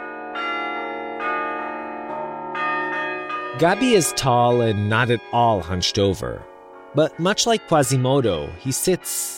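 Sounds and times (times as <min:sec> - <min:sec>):
bells being played in a bell tower: 0:00.0 - 0:09.3
speech: 0:03.6 - 0:09.3.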